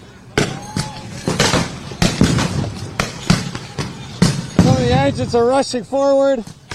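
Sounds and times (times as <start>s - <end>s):
tear gas canisters being fired into the crowd: 0.4s - 4.9s
speech: 5.1s - 6.6s.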